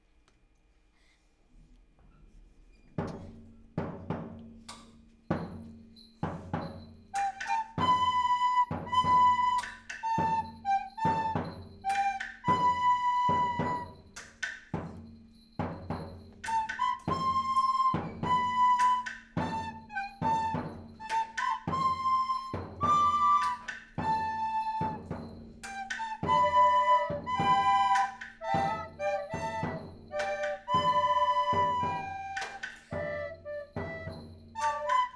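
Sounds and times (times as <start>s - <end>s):
flutes: 6.6s - 14.4s, 16.0s - 35.1s.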